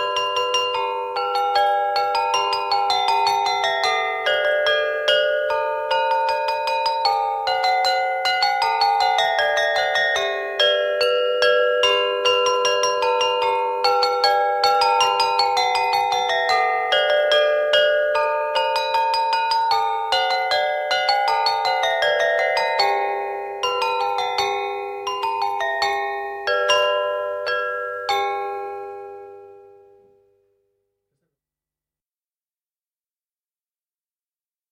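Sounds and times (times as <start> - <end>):
small bells ringing in a slow march: 0.0 - 30.3.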